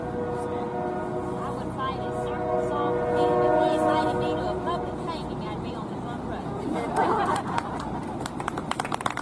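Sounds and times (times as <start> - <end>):
train horn-like tones: 0.0 - 5.4
train rumbling past: 0.0 - 9.1
laughter: 6.6 - 8.3.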